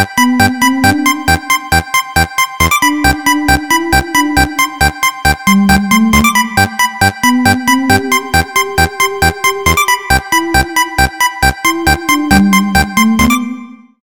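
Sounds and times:
electro music: 0.2 - 14.0.

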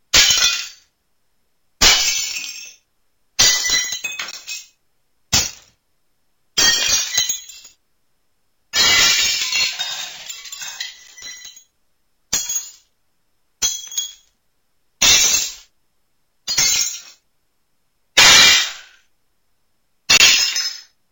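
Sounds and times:
glass breaking: 0.2 - 0.8, 1.8 - 2.8, 3.4 - 4.7, 5.4 - 5.7, 6.6 - 7.8, 8.8 - 11.7, 12.4 - 12.9, 13.6 - 14.3, 16.5 - 17.2, 18.2 - 18.9, 20.1 - 20.9.

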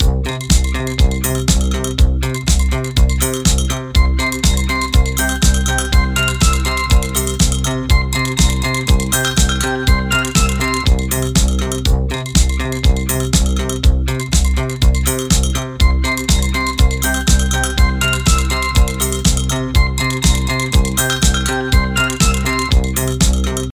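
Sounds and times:
disco music: 0.0 - 23.7.

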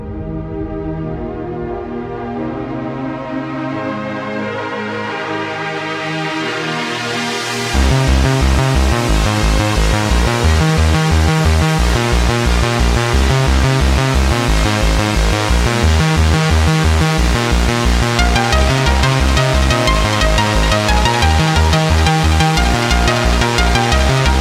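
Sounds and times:
bass: 0.0 - 24.3.

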